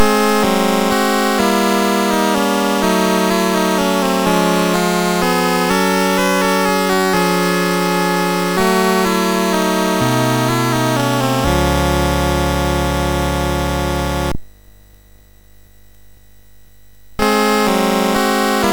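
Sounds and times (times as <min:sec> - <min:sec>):
mini chiptune melodies on SID MOS6581R3 chip: 0:00.0 - 0:14.4, 0:17.2 - 0:18.7.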